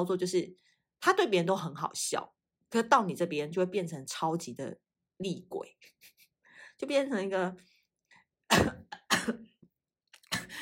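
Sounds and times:
speech: 0.0s - 6.2s, 6.8s - 7.7s, 8.5s - 9.5s
person coughing: 8.5s - 9.4s.

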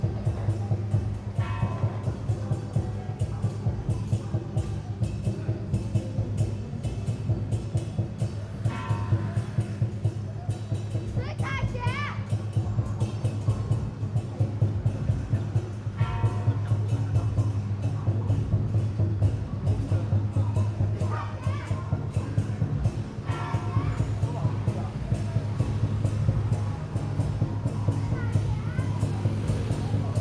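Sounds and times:
street procession crowd din at the lane by Shude Park: 0.0s - 30.2s
voices and children's calls: 0.0s - 30.2s.

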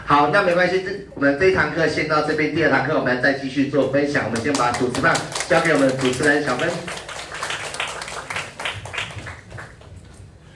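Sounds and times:
speech: 0.1s - 7.0s
audience applause: 4.5s - 10.0s.

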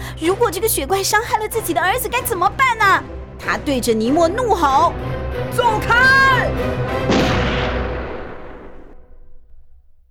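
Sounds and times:
speech: 0.2s - 7.4s
shotgun blast explosion: 7.0s - 9.1s.

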